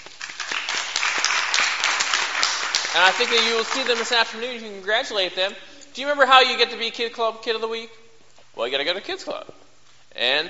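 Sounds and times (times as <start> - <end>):
audience clapping at a church kids' club gathering: 0.0 - 4.6
speech: 2.9 - 8.0, 8.6 - 9.6, 10.2 - 10.4.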